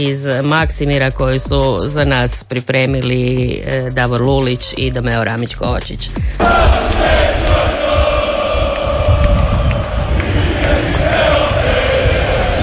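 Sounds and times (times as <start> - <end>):
speech: 0.0 - 7.4
stadium crowd of fans celebrating: 6.4 - 12.6.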